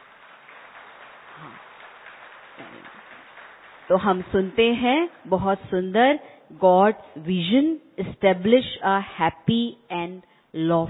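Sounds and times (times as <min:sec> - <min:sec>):
crowd applause: 0:00.0 - 0:05.4
speech: 0:01.4 - 0:01.7, 0:02.6 - 0:10.8.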